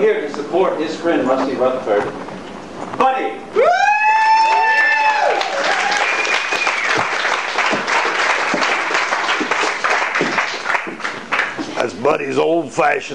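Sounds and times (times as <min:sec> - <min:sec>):
speech: 0:00.5 - 0:02.4, 0:03.0 - 0:03.7, 0:12.1 - 0:13.1
audience applause greeting guest entertainer in Albuquerque, New Mexico: 0:04.4 - 0:11.6
high whistling tones: 0:05.9 - 0:07.1.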